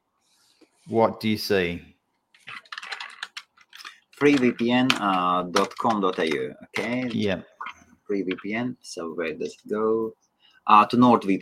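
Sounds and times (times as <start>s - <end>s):
speech: 0.9s - 1.9s, 4.2s - 7.5s, 8.1s - 11.4s
typing a web address on a computer keyboard: 2.4s - 7.2s.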